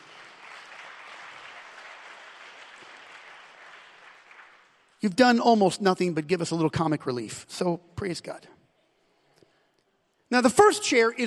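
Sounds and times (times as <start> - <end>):
audience clapping hands: 0.0 - 5.4
speech: 5.0 - 8.6, 10.3 - 11.2.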